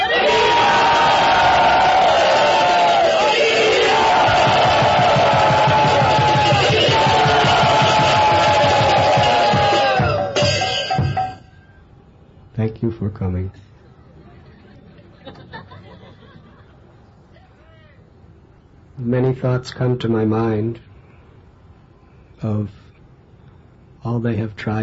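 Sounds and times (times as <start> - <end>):
crowd in Bombay cheering in welcome: 0.0 - 10.6
speech: 13.0 - 13.7, 19.0 - 20.9, 22.4 - 22.8, 24.0 - 24.8
laughter: 14.2 - 16.8.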